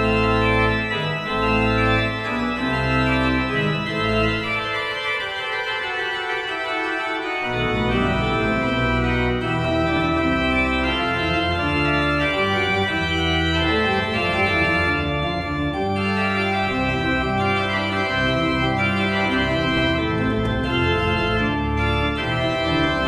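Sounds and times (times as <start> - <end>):
Prengel 14 II P pipe organ: 0.0 - 23.0.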